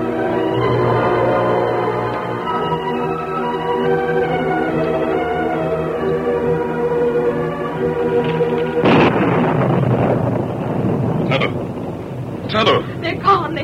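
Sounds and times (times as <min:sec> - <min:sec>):
sustained orchestral-style tones: 0:00.0 - 0:12.4
thunder crack and rumble before a rainstorm: 0:08.2 - 0:13.6.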